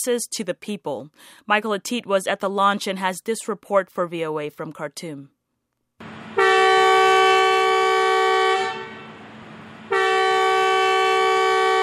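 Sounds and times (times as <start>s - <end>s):
speech: 0.0s - 5.4s
new metro train horn blasts: 6.3s - 11.8s.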